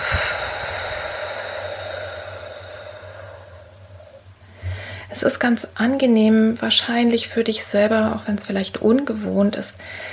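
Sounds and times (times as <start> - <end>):
person breathing in through nose, out through mouth: 0.0 - 5.1, 9.8 - 10.1
speech: 5.1 - 10.1.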